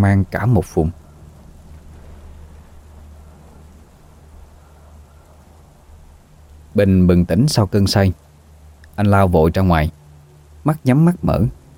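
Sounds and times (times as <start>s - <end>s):
speech: 0.0s - 1.0s, 6.8s - 8.2s, 9.0s - 10.0s, 10.6s - 11.6s
steady rain hissing: 0.0s - 11.7s
deep continuous rumble of thunder: 0.6s - 8.8s.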